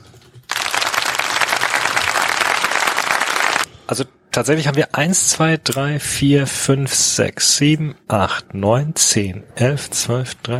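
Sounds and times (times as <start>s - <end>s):
crowd clapping at an awards ceremony for football prizes: 0.5s - 3.7s
speech: 3.9s - 10.5s.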